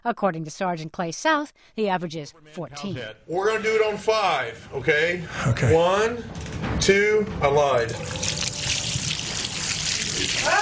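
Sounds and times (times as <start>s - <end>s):
speech: 0.0s - 8.4s
water pouring over a person: 7.9s - 10.6s.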